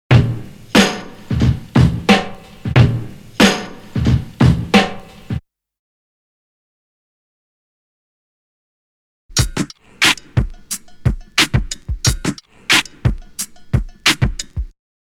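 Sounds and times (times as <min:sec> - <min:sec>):
drum loop: 0:00.1 - 0:05.4, 0:09.3 - 0:14.8.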